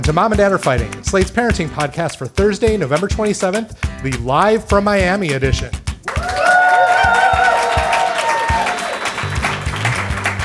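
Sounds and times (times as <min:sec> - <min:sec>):
speech: 0:00.1 - 0:05.8
live audience applauding: 0:06.0 - 0:10.4
cheering and whooping: 0:06.1 - 0:09.6.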